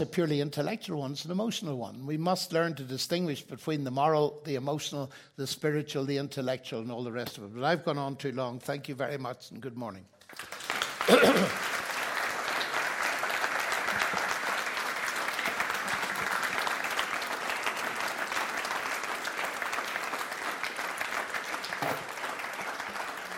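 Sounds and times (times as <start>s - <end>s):
speech: 0.0s - 11.8s
audience applause after a talk: 10.2s - 23.3s.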